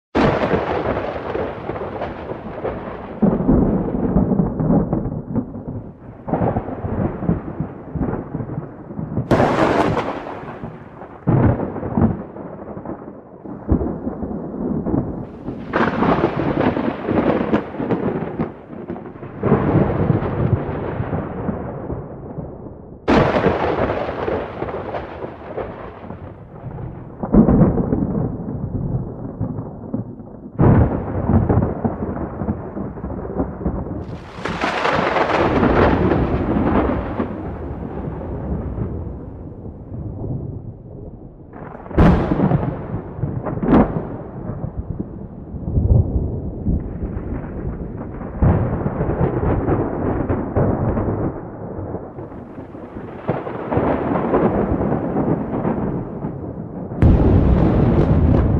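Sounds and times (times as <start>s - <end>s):
thunder: 0.2s - 58.5s.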